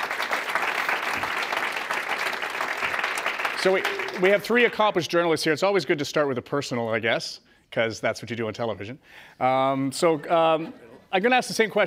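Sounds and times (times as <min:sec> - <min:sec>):
audience applause: 0:00.0 - 0:04.9
speech: 0:03.6 - 0:11.8.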